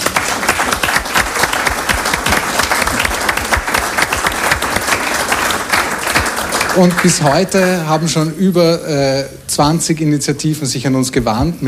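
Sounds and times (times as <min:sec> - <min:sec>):
audience applause: 0:00.0 - 0:07.4
speech: 0:06.8 - 0:11.6.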